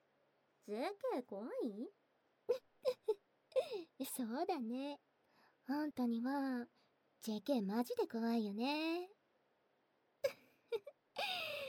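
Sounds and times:
speech: 0:00.7 - 0:02.7, 0:03.7 - 0:05.1, 0:05.7 - 0:09.1
person crying while hiding their face: 0:02.5 - 0:03.9, 0:10.2 - 0:11.6.

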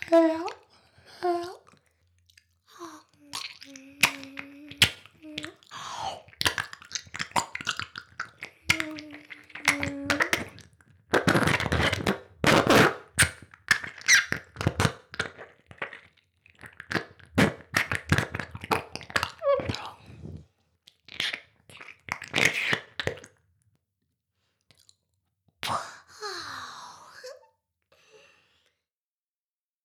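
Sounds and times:
ASMR ear licking: 0:01.5 - 0:23.4.

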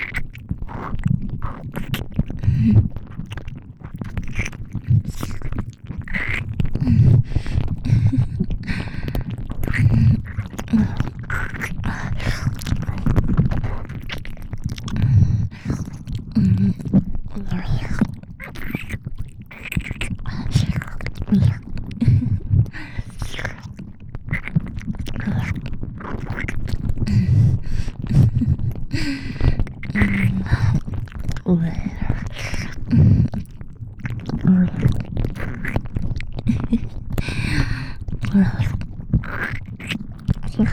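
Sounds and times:
ear licking sounds: 0:00.0 - 0:40.7
strong tentacle squelching loop: 0:00.0 - 0:40.7.

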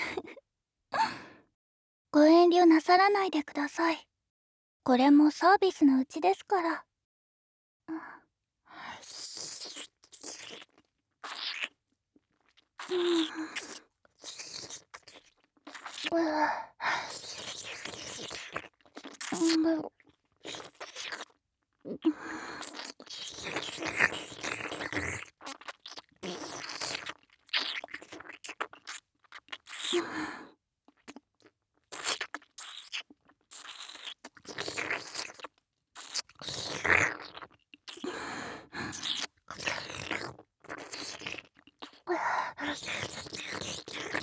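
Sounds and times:
speech: 0:02.2 - 0:04.1, 0:04.8 - 0:06.9, 0:07.9 - 0:08.1, 0:12.9 - 0:13.7, 0:16.0 - 0:18.7, 0:19.3 - 0:20.6, 0:21.8 - 0:22.8
tongue licking along a neck with moist smacks and slurps: 0:09.1 - 0:16.1, 0:16.8 - 0:44.2.

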